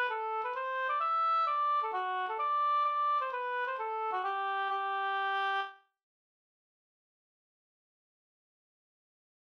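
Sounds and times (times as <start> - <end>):
hambo polska folk dance tune: 0.0 - 5.7.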